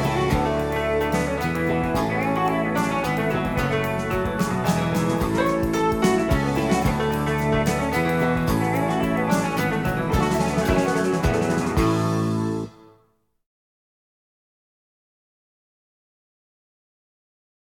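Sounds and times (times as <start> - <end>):
waltz: 0.0 - 12.8.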